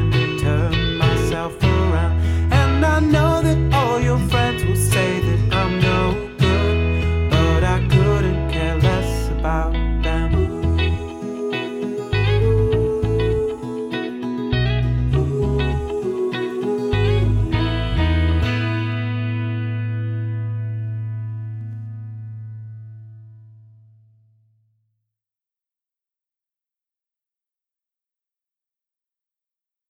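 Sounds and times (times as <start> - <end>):
backing track music: 0.0 - 22.9.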